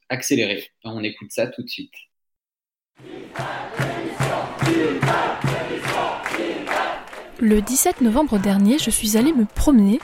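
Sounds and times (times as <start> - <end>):
speech: 0.1 - 2.1, 3.0 - 3.9, 7.4 - 10.0
protest crowd chanting in unison: 3.0 - 10.0.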